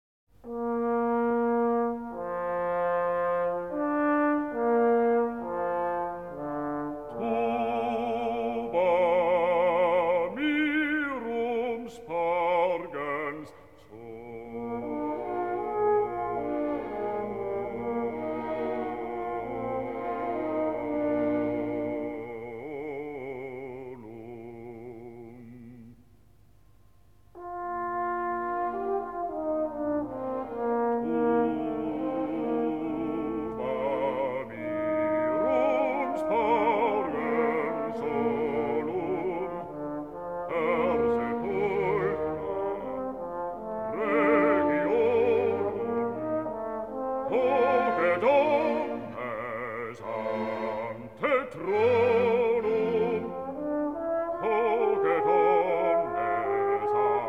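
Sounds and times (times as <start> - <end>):
choir and orchestra performing a requiem with trombone: 0.4 - 26.0, 27.4 - 57.2.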